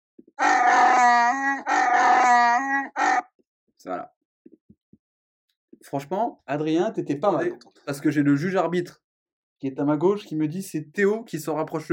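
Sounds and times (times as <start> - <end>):
film creature growling roar sound effect: 0.4 - 3.2
speech: 5.9 - 9.0, 9.6 - 11.9.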